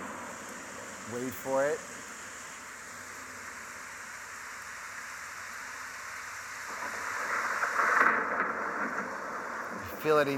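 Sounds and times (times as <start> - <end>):
speech: 1.1 - 2.0, 10.0 - 10.3
thunderstorm: 6.7 - 10.3.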